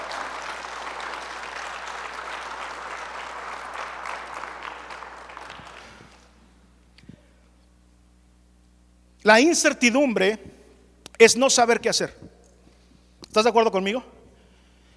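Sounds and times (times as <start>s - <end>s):
audience applause: 0.0s - 6.3s
speech: 9.2s - 10.5s, 11.2s - 12.2s, 13.3s - 14.2s.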